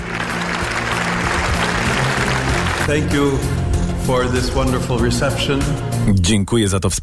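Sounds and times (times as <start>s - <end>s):
applause greeting Pope Leo XIV in the Paul VI Hall at the Vatican: 0.0s - 3.2s
speech: 2.9s - 7.0s.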